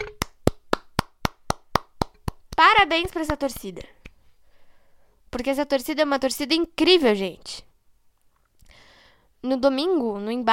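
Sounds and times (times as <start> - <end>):
hands clapping: 0.0 - 4.2
speech: 2.8 - 4.0, 5.3 - 7.7, 9.4 - 10.5.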